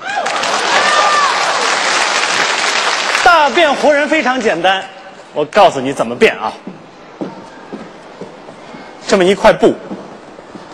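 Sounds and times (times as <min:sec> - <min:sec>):
audience applause: 0:00.0 - 0:04.5
speech: 0:03.4 - 0:06.7, 0:09.1 - 0:09.9.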